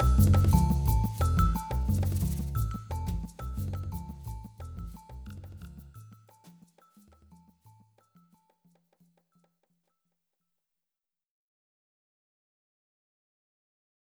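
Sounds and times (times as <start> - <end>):
instrumental music: 0.0 - 8.5.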